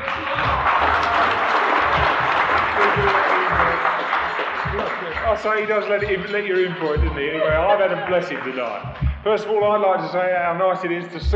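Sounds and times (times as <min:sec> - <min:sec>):
audience clapping: 0:00.0 - 0:10.3
laughter: 0:00.0 - 0:11.3
low murmurs: 0:00.0 - 0:11.3
speech: 0:05.4 - 0:11.3.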